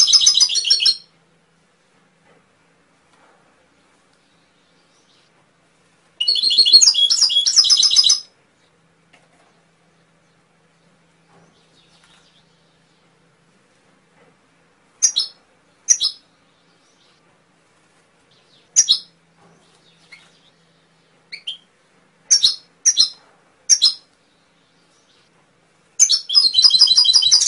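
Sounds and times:
canary chirping and singing: 0.0s - 1.1s, 6.2s - 8.3s, 15.0s - 16.2s, 18.3s - 20.6s, 21.3s - 21.7s, 22.3s - 24.1s, 26.0s - 27.4s.

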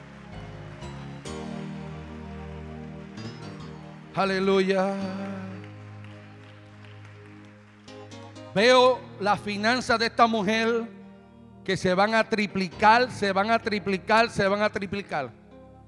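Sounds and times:
audience applauding loudly: 0.0s - 10.4s
speech: 4.2s - 5.2s, 8.6s - 11.0s, 11.7s - 15.4s.

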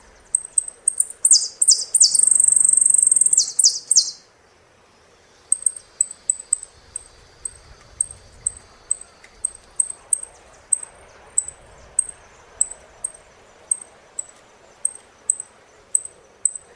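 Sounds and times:
saffron finch chips and buzzy notes: 0.1s - 4.3s, 5.5s - 16.7s.

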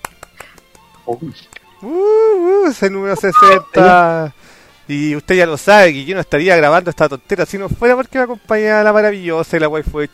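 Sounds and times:
single pair of hands clapping: 0.0s - 1.8s
speech: 1.0s - 10.1s
short voiced exclamation: 3.2s - 4.2s.

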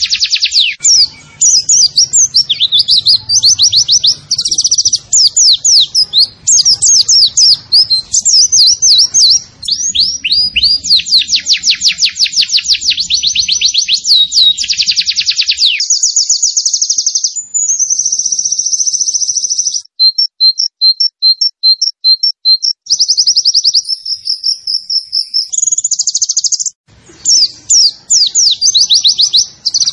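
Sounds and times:
white-eye chirping song: 0.0s - 29.9s.

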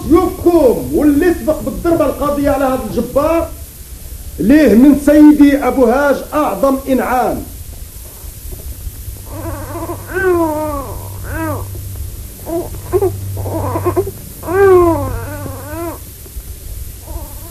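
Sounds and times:
speech: 0.1s - 3.6s, 4.4s - 7.5s
newborn baby crying: 9.2s - 16.1s, 17.0s - 17.4s.

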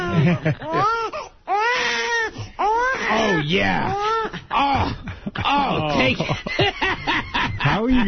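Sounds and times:
laughter: 0.0s - 1.1s, 4.3s - 8.0s
baby crying: 0.0s - 6.1s
speech: 0.2s - 1.0s, 3.1s - 8.0s.

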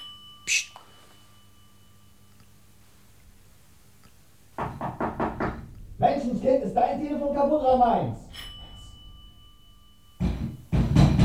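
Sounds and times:
pounding on a door: 4.5s - 8.8s, 10.2s - 11.2s
speech: 6.5s - 8.2s.

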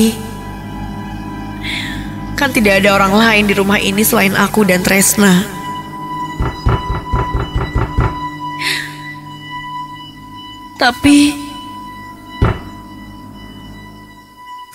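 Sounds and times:
speech: 0.0s - 0.2s, 2.4s - 5.6s, 10.8s - 11.4s
pounding knocks on a door: 6.4s - 8.3s, 12.4s - 12.8s.

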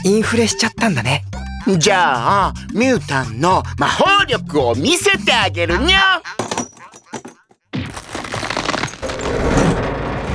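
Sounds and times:
speech: 0.0s - 6.3s
metal folding chair being bent: 8.2s - 10.3s.

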